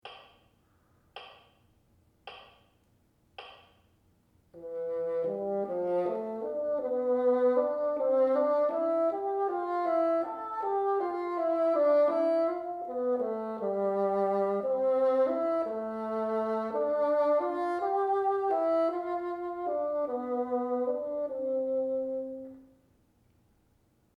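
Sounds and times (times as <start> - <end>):
bassoon: 4.6 - 22.8.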